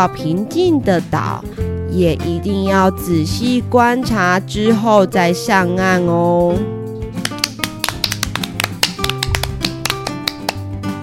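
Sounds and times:
speech: 0.0s - 6.8s
hands clapping: 7.2s - 10.7s.

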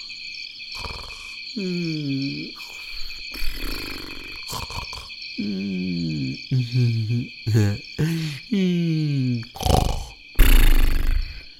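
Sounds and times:
steady high-pitched insect-like chirring: 0.0s - 11.5s
deep rumbling snoring: 0.8s - 8.4s, 9.4s - 11.4s
brief murmuring voice: 1.1s - 10.2s
speech: 1.6s - 2.6s.

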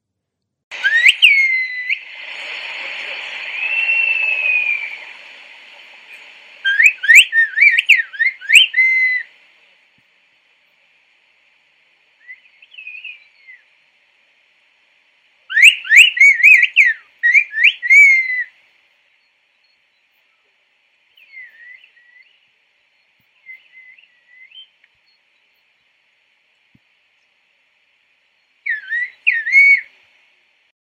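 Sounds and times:
Turkish whistled language: 0.7s - 9.5s, 12.2s - 13.8s, 15.5s - 18.6s, 21.1s - 25.7s, 28.6s - 30.0s.

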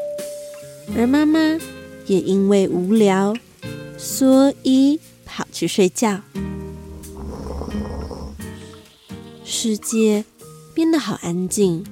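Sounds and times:
speech: 0.9s - 6.5s, 9.6s - 11.9s
rain pattering: 0.9s - 8.0s.

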